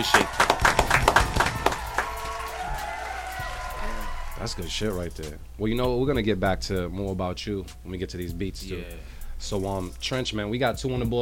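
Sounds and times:
speech: 0.0 - 0.4, 4.4 - 11.2
people clapping: 0.0 - 4.5.

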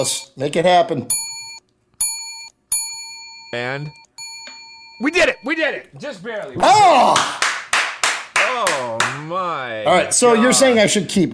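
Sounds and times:
speech: 0.0 - 1.2, 3.5 - 4.0, 5.0 - 7.4, 8.6 - 11.3
bell dinging: 1.1 - 5.8.

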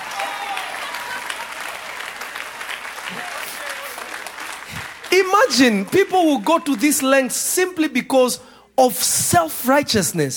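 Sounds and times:
crowd applause: 0.0 - 7.4
speech: 5.1 - 10.3.

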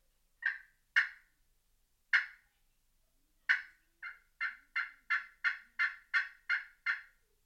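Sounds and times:
turkey tree yelps on glass friction call: 0.4 - 1.2, 2.1 - 2.4, 3.5 - 7.2.

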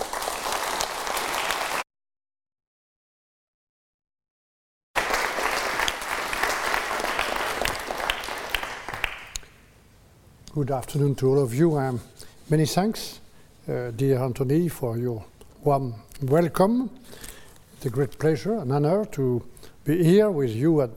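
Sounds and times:
audience applause welcoming Michel Barnier at the Royal Society of Arts: 0.0 - 1.8, 5.0 - 9.4
speech: 10.6 - 20.9.

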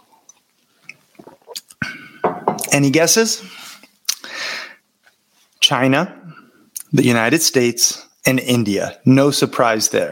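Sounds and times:
person sipping matcha tea: 0.1 - 1.9
speech: 2.7 - 3.6, 5.7 - 6.2, 6.9 - 10.1.

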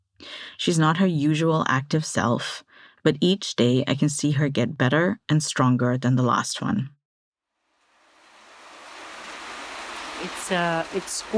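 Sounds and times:
speech: 0.6 - 7.0, 10.2 - 11.3
heavy rain coming down: 7.6 - 11.3.

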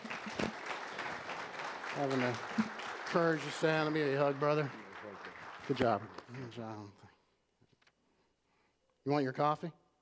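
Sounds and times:
round of applause: 0.0 - 7.0
speech: 2.0 - 4.8, 5.7 - 7.0, 9.0 - 9.8.

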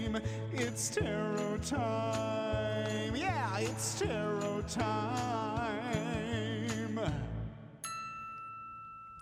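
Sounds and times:
speech: 0.2 - 7.2
chime: 7.8 - 9.2.

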